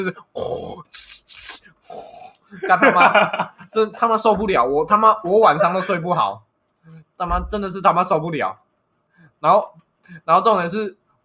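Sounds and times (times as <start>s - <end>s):
speech: 0.0s - 8.6s, 9.4s - 11.2s
voice imitating heavy snoring like a truck: 0.3s - 0.9s, 1.8s - 2.4s
laughter: 2.5s - 4.0s.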